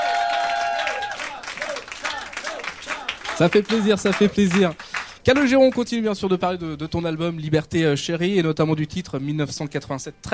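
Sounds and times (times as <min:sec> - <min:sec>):
live audience at a public music session in Rennes cheering and applauding a singer: 0:00.0 - 0:05.5
speech: 0:03.4 - 0:10.3.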